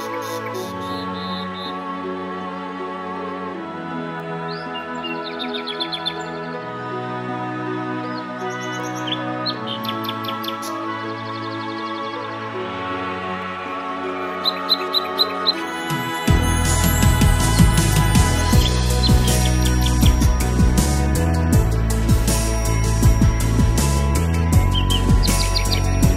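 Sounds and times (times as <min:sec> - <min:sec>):
birdsong: 0:00.0 - 0:02.9, 0:04.2 - 0:06.9, 0:08.0 - 0:12.5, 0:14.3 - 0:21.4, 0:24.5 - 0:26.1
cheerful positive music: 0:00.0 - 0:26.1.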